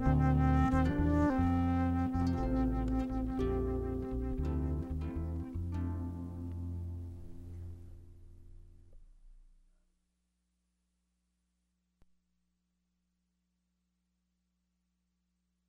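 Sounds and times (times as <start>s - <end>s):
jazz harp trio playing: 0.0s - 8.4s.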